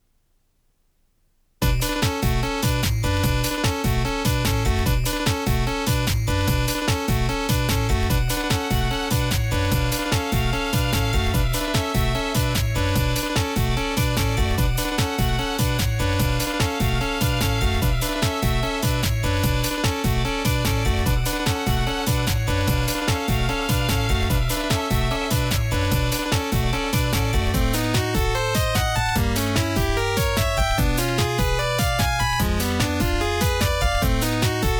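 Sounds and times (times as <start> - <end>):
techno music from gold-plated tape: 1.6 - 34.7.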